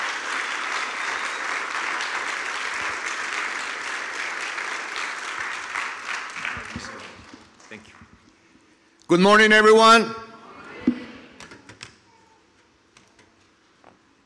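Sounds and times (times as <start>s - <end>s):
audience applause: 0.0s - 8.0s
speech: 7.7s - 8.0s, 9.1s - 10.2s.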